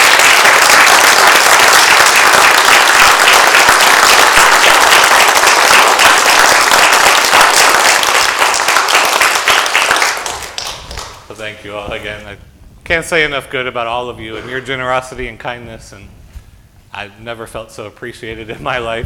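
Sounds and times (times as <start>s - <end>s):
crowd applause: 0.0s - 11.2s
speech: 11.6s - 16.2s, 17.0s - 19.0s.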